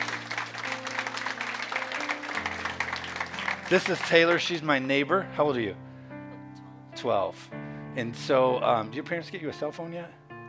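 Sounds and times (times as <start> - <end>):
audience clapping: 0.0 - 4.8
speech: 3.7 - 5.8, 7.0 - 10.2.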